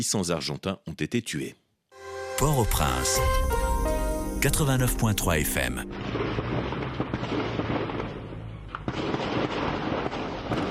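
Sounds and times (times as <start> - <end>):
speech: 0.0 - 1.6, 2.4 - 3.6, 4.4 - 6.2, 7.0 - 7.7
intense gunfire in Haiti: 5.9 - 10.6.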